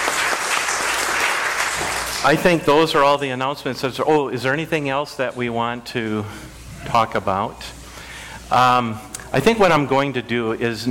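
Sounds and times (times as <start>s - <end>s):
audience applause: 0.0s - 2.4s
speech: 2.2s - 7.8s, 8.5s - 10.8s.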